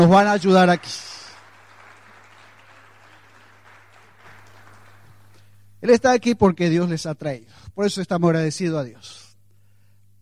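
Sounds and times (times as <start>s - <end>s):
speech: 0.0s - 1.1s, 5.8s - 9.2s
audience applause: 0.0s - 5.5s.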